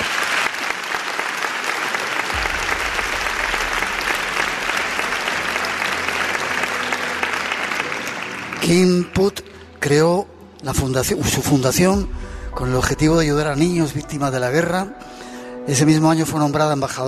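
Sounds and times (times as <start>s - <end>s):
audience applause: 0.0s - 9.4s
speech: 8.7s - 15.1s, 15.7s - 17.0s.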